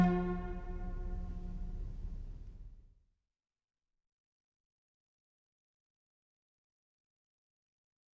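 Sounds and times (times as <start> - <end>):
sonata in F major: 0.0 - 2.8.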